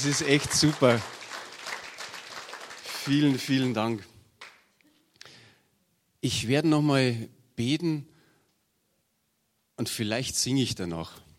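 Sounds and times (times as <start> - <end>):
speech: 0.0 - 1.2, 3.1 - 4.1, 6.2 - 8.1, 9.8 - 11.2
crowd applauding: 0.0 - 4.7.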